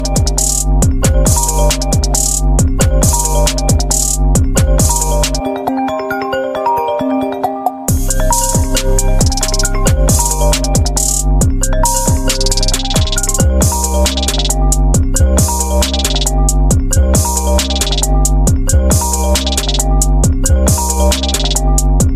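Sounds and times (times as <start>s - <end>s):
original Apple iPhone ringtone: 0.0s - 22.1s.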